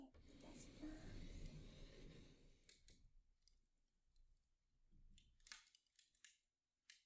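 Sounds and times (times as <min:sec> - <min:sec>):
irori sunken hearth fire: 0:00.2 - 0:03.0.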